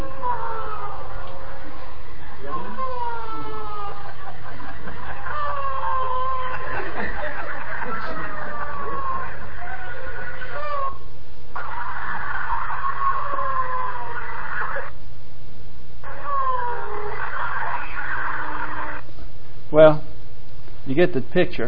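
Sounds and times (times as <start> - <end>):
people howling: 0.0 - 15.0, 16.0 - 19.1
laughter: 1.2 - 10.9, 11.6 - 14.9, 16.3 - 18.9
speech: 21.0 - 21.6.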